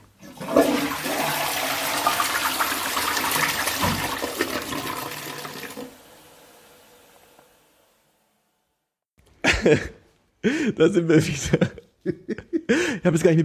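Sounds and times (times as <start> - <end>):
toilet flushing: 0.0 - 8.2
laughter: 9.4 - 13.0
speech: 9.6 - 13.4.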